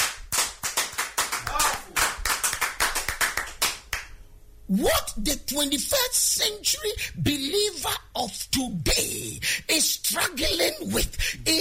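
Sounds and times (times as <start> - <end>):
audience clapping: 0.0 - 4.2
speech: 4.7 - 11.5.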